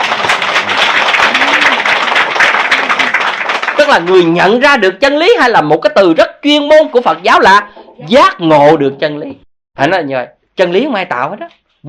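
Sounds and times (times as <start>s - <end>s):
audience applause: 0.0s - 4.4s
speech: 3.9s - 11.8s.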